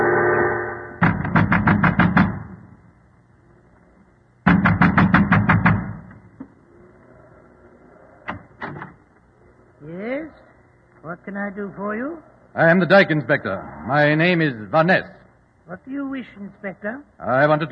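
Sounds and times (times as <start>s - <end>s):
man pounding at the door of a windmill: 1.0s - 2.6s, 4.4s - 6.1s
speech: 11.4s - 17.7s.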